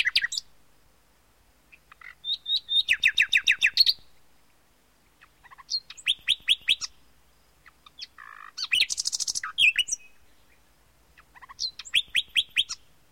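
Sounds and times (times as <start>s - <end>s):
common nightingale song: 0.0s - 0.5s, 1.7s - 4.2s, 5.1s - 7.0s, 7.6s - 12.9s.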